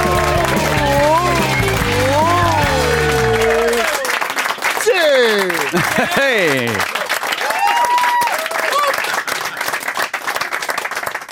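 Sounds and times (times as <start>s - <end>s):
loud gliding voice: 0.0s - 4.0s
audience whooping: 0.0s - 9.2s
audience applause at a late-night television show: 0.0s - 11.3s
laughter: 4.8s - 7.1s
speech: 5.8s - 6.9s.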